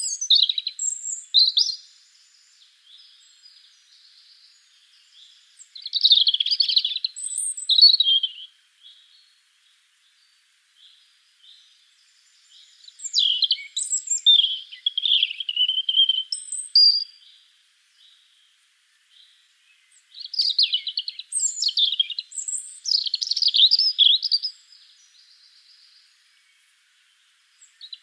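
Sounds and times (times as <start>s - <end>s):
European robin Erithacus rubecula singing: 0.0s - 28.0s.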